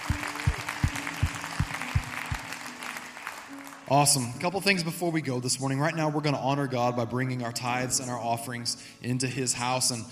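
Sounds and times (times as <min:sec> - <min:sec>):
low thumping beat: 0:00.0 - 0:02.5
church congregation clapping: 0:00.0 - 0:04.5
speech: 0:03.9 - 0:10.0.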